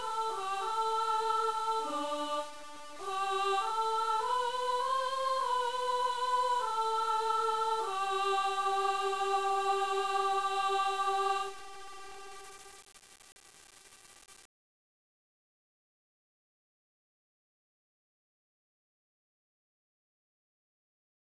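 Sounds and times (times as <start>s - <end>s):
sopranos singing: 0.0s - 12.4s.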